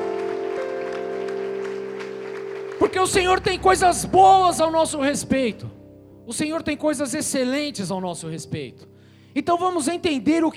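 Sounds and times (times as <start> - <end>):
audience applause: 0.0 - 3.5
speech: 2.9 - 10.5.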